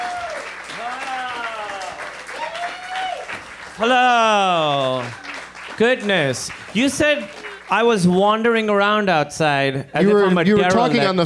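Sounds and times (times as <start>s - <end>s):
audience applause welcoming a guest onto a stage: 0.0s - 8.5s
speech: 3.8s - 5.2s, 5.8s - 11.2s.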